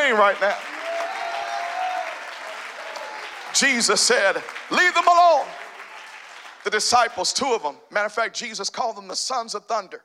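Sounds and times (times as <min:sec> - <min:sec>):
crowd clapping hands: 0:00.0 - 0:07.4
speech: 0:00.1 - 0:00.7, 0:03.6 - 0:05.6, 0:06.6 - 0:10.0.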